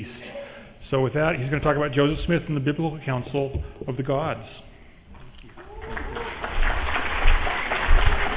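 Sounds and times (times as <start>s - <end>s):
speech: 0.9s - 4.7s
audience applause: 5.6s - 8.3s.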